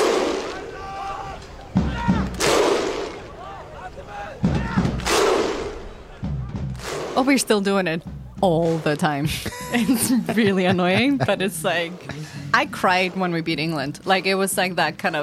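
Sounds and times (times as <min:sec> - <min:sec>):
crowd shouting in unison: 0:00.2 - 0:06.5
speech: 0:07.2 - 0:15.2
laughter: 0:09.1 - 0:12.7.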